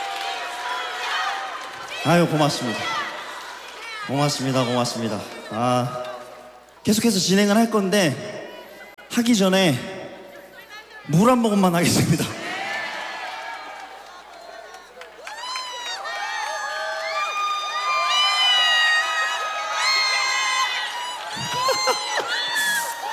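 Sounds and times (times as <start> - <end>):
audience applause: 0.0 - 6.0, 11.9 - 23.1
speech: 2.0 - 3.0, 4.1 - 6.1, 6.8 - 8.4, 9.2 - 9.9, 11.1 - 12.4.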